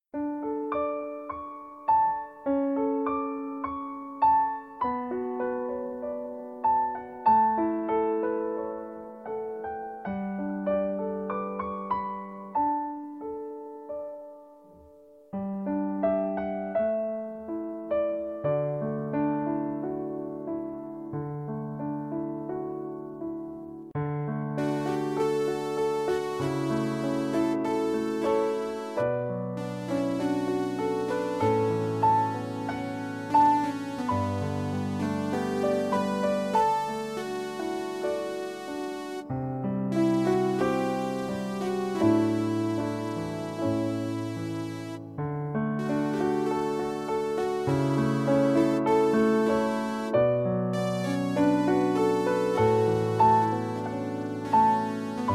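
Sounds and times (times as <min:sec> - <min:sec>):
piano parts: 0:00.0 - 0:55.3.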